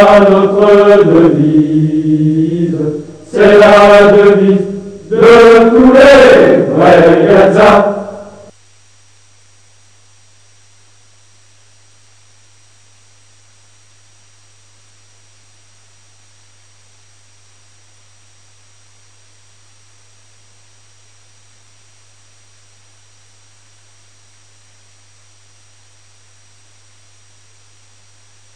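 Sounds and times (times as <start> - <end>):
hymn: 0.0 - 8.5.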